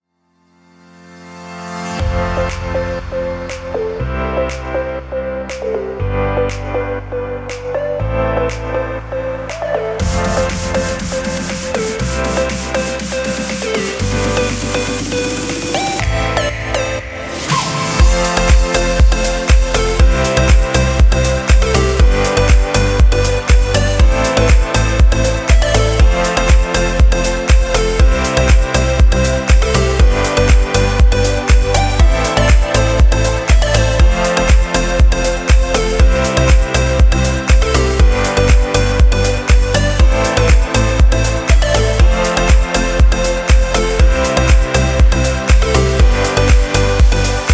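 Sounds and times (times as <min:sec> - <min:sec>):
summer uplifting pop music: 0:02.0 - 0:47.5.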